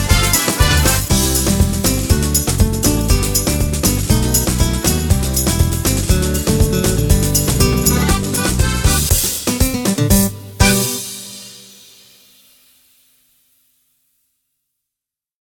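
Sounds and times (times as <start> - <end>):
soca music: 0.0 - 12.0.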